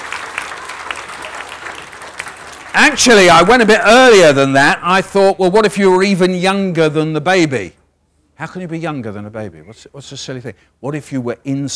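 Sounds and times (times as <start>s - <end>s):
audience clapping: 0.0s - 4.1s
speech: 2.8s - 7.8s, 8.4s - 11.7s.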